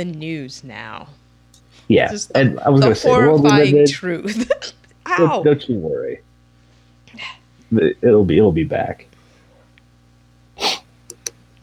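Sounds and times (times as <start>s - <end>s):
speech: 0.0s - 1.2s, 1.8s - 6.3s, 7.1s - 9.1s
laughter: 1.9s - 4.8s
sharp breathy hiccup: 10.6s - 10.9s
faint clicks: 11.1s - 11.4s.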